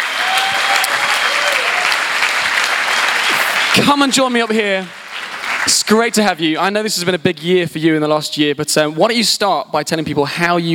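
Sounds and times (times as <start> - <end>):
audience applause: 0.0 - 6.0
speech: 3.8 - 5.0, 5.9 - 10.7.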